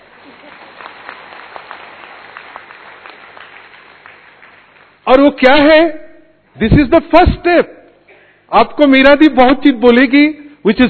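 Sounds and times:
audience applause: 0.0 - 5.0
speech: 5.2 - 6.0, 6.6 - 7.8, 8.5 - 10.8.

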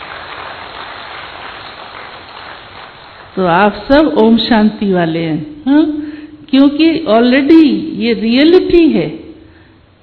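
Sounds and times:
crowd applause: 0.0 - 3.4
speech: 3.4 - 9.2.

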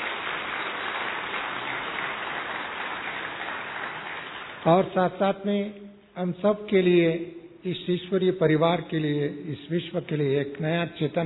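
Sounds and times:
audience applause: 0.0 - 4.7
speech: 4.6 - 11.2.

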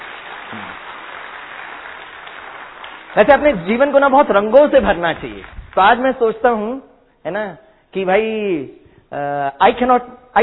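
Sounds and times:
audience applause: 0.0 - 4.0
speech: 3.1 - 10.4.

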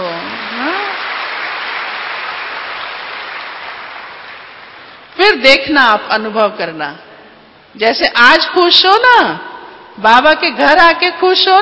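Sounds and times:
audience clapping: 0.0 - 5.2
speech: 5.3 - 7.0, 7.7 - 11.6.

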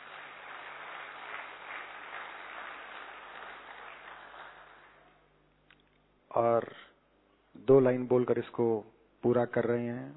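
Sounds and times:
crowd applause: 0.0 - 5.2
speech: 6.4 - 6.8, 7.7 - 10.1.

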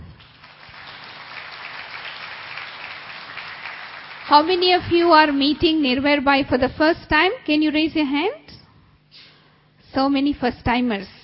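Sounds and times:
audience clapping hands in welcome: 0.0 - 5.8
speech: 4.3 - 8.5, 9.9 - 11.2.

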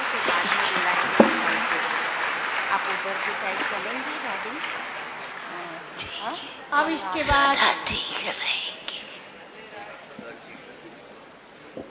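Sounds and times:
audience applause: 0.0 - 5.6
speech: 3.4 - 8.7.

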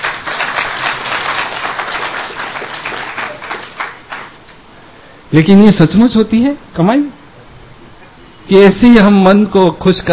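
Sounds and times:
audience clapping: 0.0 - 4.4
speech: 5.3 - 7.2, 8.5 - 10.1.

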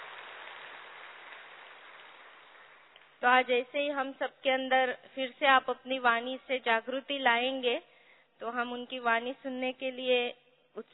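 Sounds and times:
audience applause: 0.0 - 3.0
speech: 3.2 - 10.9.

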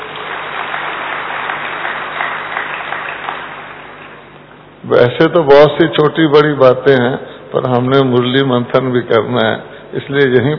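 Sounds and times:
audience applause: 0.0 - 4.3
speech: 4.9 - 10.5.

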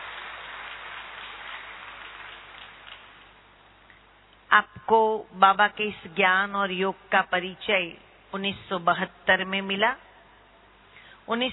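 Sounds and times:
audience applauding to welcome a speaker at a gathering: 0.0 - 3.4
speech: 4.5 - 10.0, 11.3 - 11.5.

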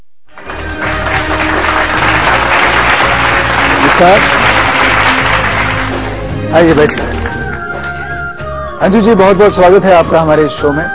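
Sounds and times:
loud audience applause: 0.3 - 6.2
speech: 4.0 - 4.4, 6.5 - 7.0, 8.8 - 10.9.

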